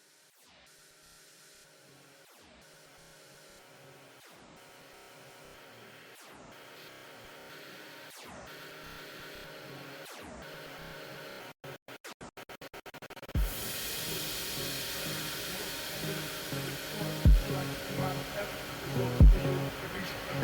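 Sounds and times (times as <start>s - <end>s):
phonk remix music: 5.6s - 20.4s.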